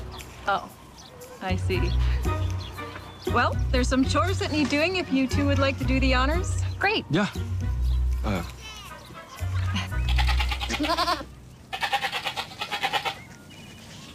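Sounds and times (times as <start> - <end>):
speech: 0.5 - 0.8, 1.4 - 2.4, 3.3 - 7.5, 8.2 - 8.6, 10.8 - 11.2
goats bleating: 8.4 - 13.3.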